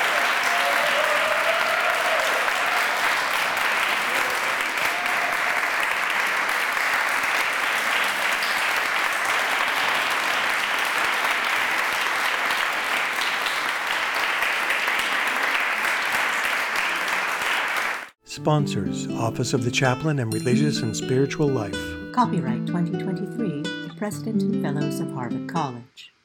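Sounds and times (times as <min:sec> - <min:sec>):
audience standing applause: 0:00.0 - 0:18.2
speech: 0:18.4 - 0:26.2.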